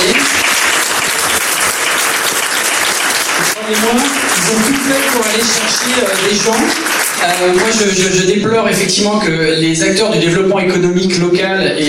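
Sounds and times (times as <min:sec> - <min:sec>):
audience applause: 0:00.0 - 0:08.2
speech: 0:03.7 - 0:11.8.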